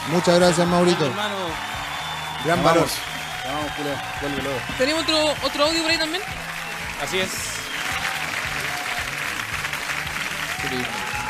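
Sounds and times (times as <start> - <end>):
audience applause: 0.0 - 11.2
speech: 0.1 - 1.8, 2.4 - 7.6, 10.7 - 11.1.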